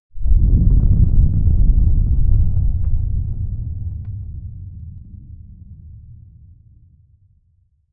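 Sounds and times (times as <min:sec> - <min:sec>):
massive stratovolcano erupting: 0:00.2 - 0:06.2.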